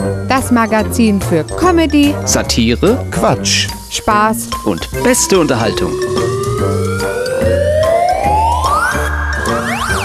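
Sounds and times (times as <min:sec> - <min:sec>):
speech: 0:00.4 - 0:06.7
slide whistle chirping: 0:05.3 - 0:10.0.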